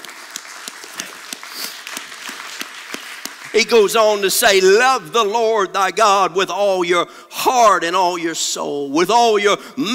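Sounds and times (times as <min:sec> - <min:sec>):
audience clapping: 0:00.0 - 0:04.8
speech: 0:03.5 - 0:09.9.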